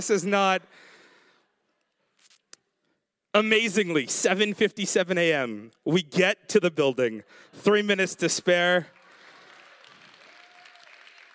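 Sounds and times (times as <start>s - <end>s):
speech: 0.0s - 0.9s, 3.4s - 9.0s
audience clapping: 8.4s - 11.3s.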